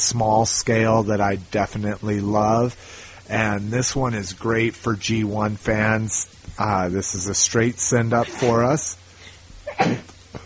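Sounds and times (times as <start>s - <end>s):
speech: 0.0s - 9.0s, 9.8s - 10.4s
held-back sneeze: 8.2s - 8.6s, 9.2s - 10.1s.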